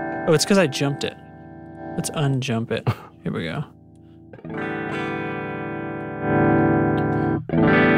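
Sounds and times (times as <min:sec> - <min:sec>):
electric guitar through a Plexi amp, basic tone: 0:00.0 - 0:07.9
speech: 0:00.2 - 0:01.2, 0:02.0 - 0:03.8, 0:04.4 - 0:05.2.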